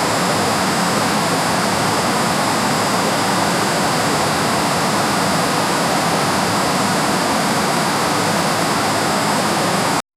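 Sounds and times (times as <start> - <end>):
distant roar of a waterfall in the wilderness: 0.0 - 10.0.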